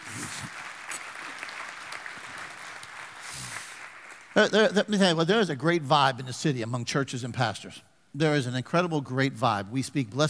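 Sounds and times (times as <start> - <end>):
audience applauding to welcome a visiting pastor: 0.0 - 4.5
speech: 4.4 - 10.2.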